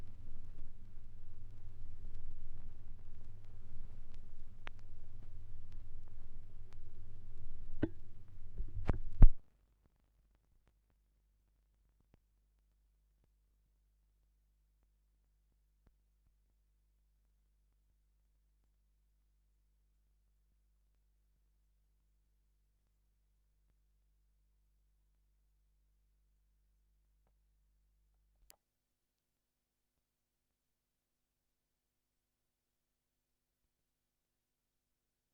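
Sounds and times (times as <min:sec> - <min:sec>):
gramophone record noise at 16 rpm: 0:00.0 - 0:09.4.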